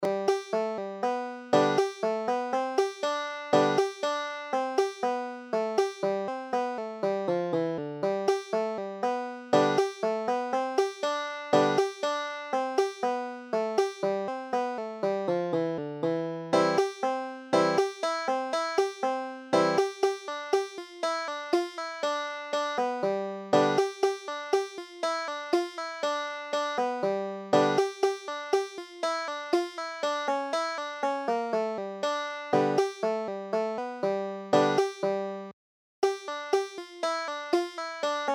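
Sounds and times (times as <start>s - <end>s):
banjo: 0.0s - 38.3s.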